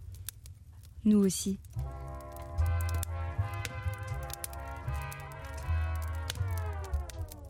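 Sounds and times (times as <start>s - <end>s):
crackling of a bonfire: 0.0s - 7.4s
speech: 1.0s - 1.8s.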